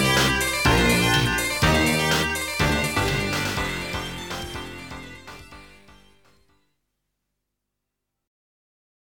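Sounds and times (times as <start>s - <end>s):
3D stage background game music: 0.0s - 6.6s.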